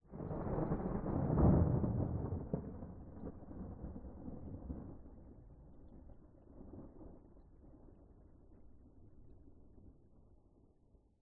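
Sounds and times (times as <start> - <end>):
thunder: 0.0 - 8.7.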